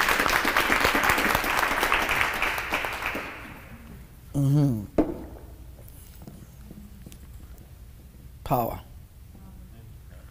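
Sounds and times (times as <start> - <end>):
audience clapping: 0.0 - 3.8
speech: 4.4 - 4.9, 8.5 - 8.9.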